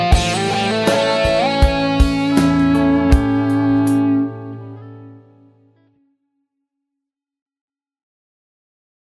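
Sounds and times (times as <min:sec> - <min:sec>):
blues music: 0:00.0 - 0:05.8.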